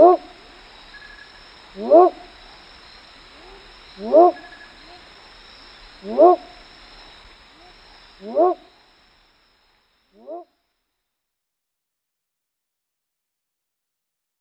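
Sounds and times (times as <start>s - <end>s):
Leptodactylus myersi: 0.0s - 10.6s.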